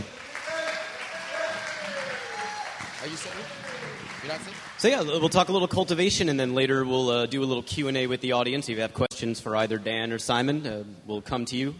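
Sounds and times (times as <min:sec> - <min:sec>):
roomful of people applauding: 0:00.0 - 0:05.6
faint cheer or whistle: 0:00.1 - 0:04.8
speech: 0:03.0 - 0:11.7.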